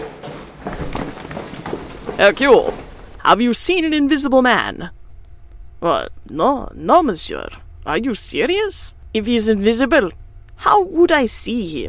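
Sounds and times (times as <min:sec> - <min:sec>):
footsteps running down a hall: 0:00.0 - 0:03.4
speech: 0:02.2 - 0:05.0, 0:05.8 - 0:11.8.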